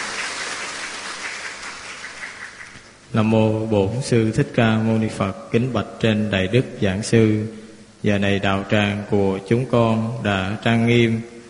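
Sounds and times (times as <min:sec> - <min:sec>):
applause: 0:00.0 - 0:02.9
speech: 0:03.1 - 0:11.3.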